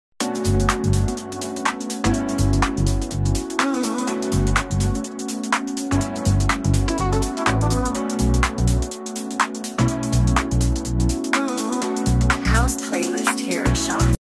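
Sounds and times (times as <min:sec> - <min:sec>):
Hindi sad love ringtone music: 0:00.2 - 0:14.1.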